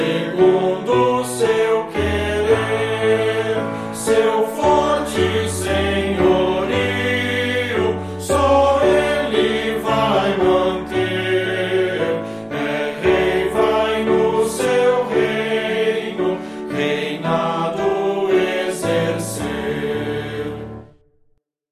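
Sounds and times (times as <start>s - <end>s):
person singing: 0.0s - 20.7s
piano: 0.0s - 21.4s.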